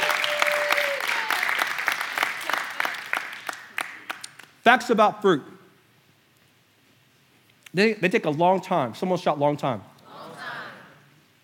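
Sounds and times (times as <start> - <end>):
group of people clapping: 0.0 - 4.6
speech: 4.7 - 5.5, 7.7 - 9.9.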